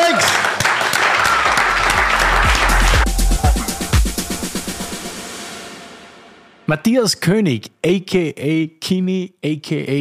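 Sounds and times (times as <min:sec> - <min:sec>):
audience applause: 0:00.0 - 0:04.2
speech: 0:06.7 - 0:09.9.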